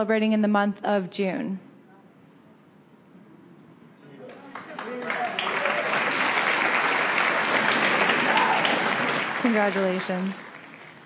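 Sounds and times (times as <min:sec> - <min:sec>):
speech: 0:00.0 - 0:01.7, 0:09.4 - 0:10.4
audience applause: 0:04.3 - 0:11.0.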